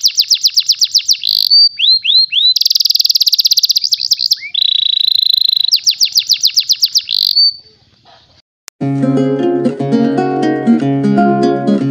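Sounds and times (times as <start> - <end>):
canary song: 0.0 - 8.4
tonal instrumental music: 8.8 - 11.8.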